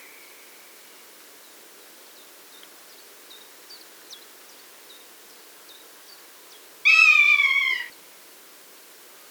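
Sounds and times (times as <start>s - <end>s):
rough-legged buzzard Buteo lagopus: 6.9s - 7.9s.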